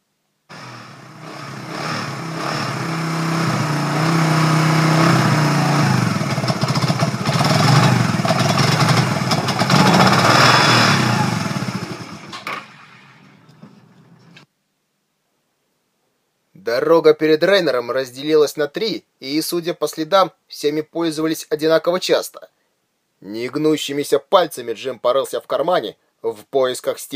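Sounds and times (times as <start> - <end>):
hoverbike engine roaring and shutting off, ridden out of a canyon onto a plain: 0.5 - 14.4
speech: 17.0 - 22.6, 23.2 - 27.1.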